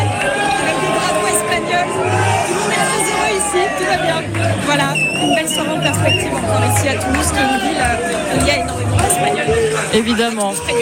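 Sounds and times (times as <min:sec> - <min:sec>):
bar crowd shouting and singing: 0:00.0 - 0:10.8
speech: 0:03.9 - 0:10.8.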